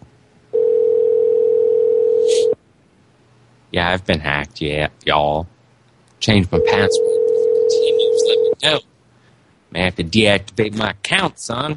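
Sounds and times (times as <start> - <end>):
telephone dial tone: 0.6 - 2.6, 7.0 - 7.7
speech: 3.7 - 5.5, 6.2 - 7.1, 8.6 - 8.9, 9.7 - 11.7.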